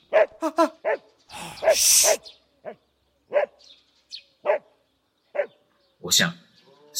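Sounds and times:
dog barking at passers-by: 0.1s - 3.6s, 4.4s - 4.7s, 5.3s - 5.6s
speech: 1.8s - 2.3s, 6.2s - 6.4s.

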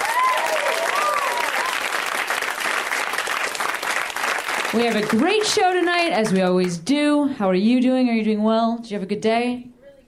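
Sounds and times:
audience applause: 0.0s - 6.6s
speech: 4.7s - 9.7s.

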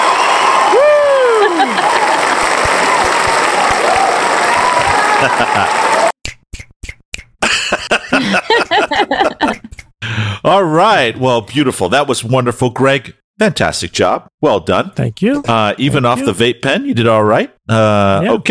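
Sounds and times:
applause sound effect: 0.0s - 6.1s
laughter: 1.2s - 2.4s, 4.9s - 6.1s, 7.4s - 9.9s
speech: 5.2s - 5.9s, 10.5s - 18.4s.

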